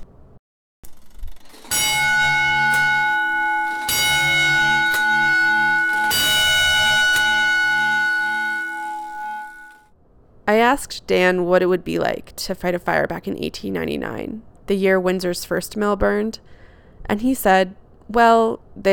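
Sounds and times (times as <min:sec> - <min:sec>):
1940s fire alarm box bell ringing: 0:01.5 - 0:09.8
speech: 0:10.7 - 0:18.9.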